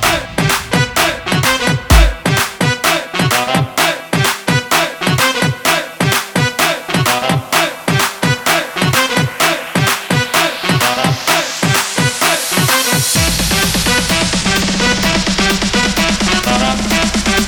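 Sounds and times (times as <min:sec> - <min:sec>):
aleteo dance music: 0:00.0 - 0:17.4.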